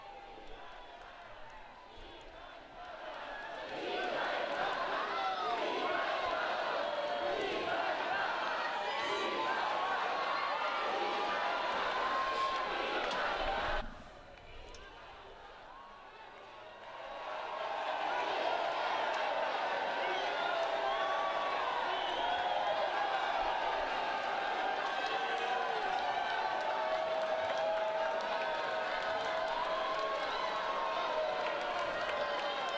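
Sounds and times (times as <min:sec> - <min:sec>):
large crowd shouting a cheer: 0:00.0 - 0:32.7.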